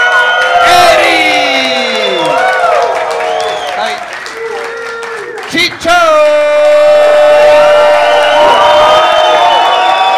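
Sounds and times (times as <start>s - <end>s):
live comedy show audience clapping: 0.0s - 10.1s
live comedy show audience whoops and whistles: 1.8s - 5.0s, 7.4s - 10.1s.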